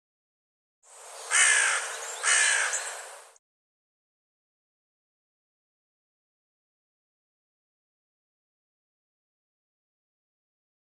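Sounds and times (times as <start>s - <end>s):
bird husky cawing: 1.2s - 3.2s.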